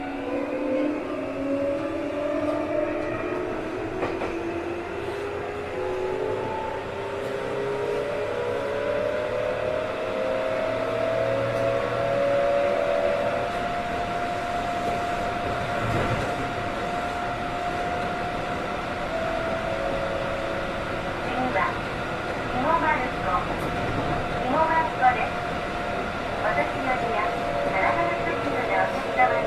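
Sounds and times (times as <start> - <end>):
Tokyu 7700 train: 0.0 - 29.4.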